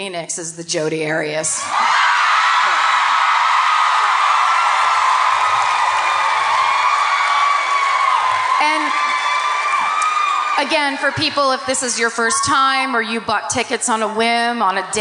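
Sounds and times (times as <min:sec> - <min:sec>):
speech: 0:00.0 - 0:02.2, 0:10.6 - 0:14.9
large audience cheering and whooping: 0:01.6 - 0:12.6.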